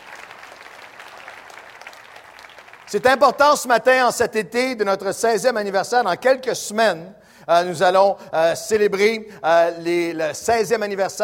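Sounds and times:
church congregation applauding during a French-language service: 0.0 - 4.0
speech: 2.9 - 11.2.

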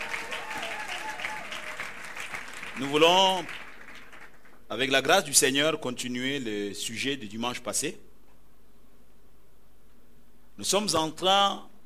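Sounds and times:
church congregation applauding: 0.0 - 4.7
speech: 2.8 - 3.6, 4.7 - 8.1, 10.6 - 11.7.

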